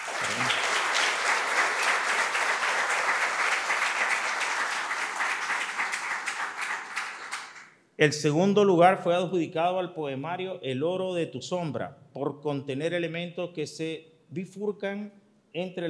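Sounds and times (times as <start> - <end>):
audience applause: 0.0 - 7.7
speech: 8.0 - 15.8.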